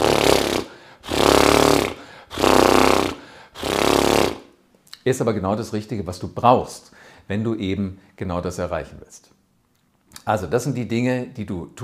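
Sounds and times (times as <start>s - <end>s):
person blowing lip trills imitating a horse's snort: 0.0s - 4.6s
speech: 5.0s - 9.4s, 10.3s - 11.8s.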